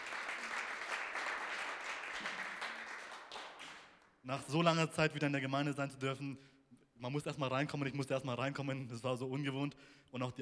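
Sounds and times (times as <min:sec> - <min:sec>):
audience applause: 0:00.0 - 0:04.0
speech: 0:04.2 - 0:10.4.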